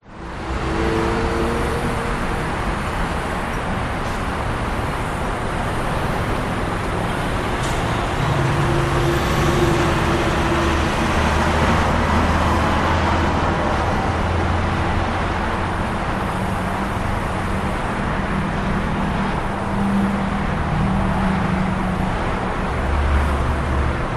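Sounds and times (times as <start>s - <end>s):
Interstate 15 traffic in Las Vegas USA: 0.0s - 24.1s.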